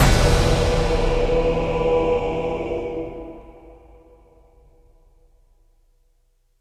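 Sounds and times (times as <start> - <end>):
death music stinger: 0.0 - 4.9.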